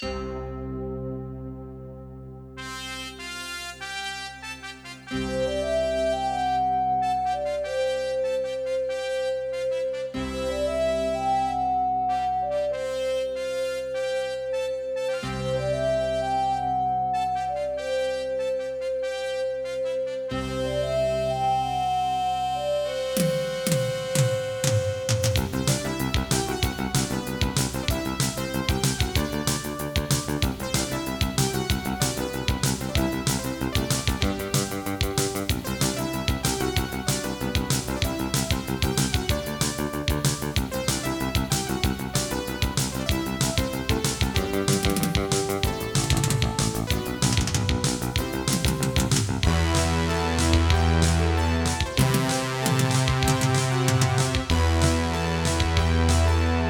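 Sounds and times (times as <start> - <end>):
AWE64 sound card synthesized music: 0.0 - 56.6.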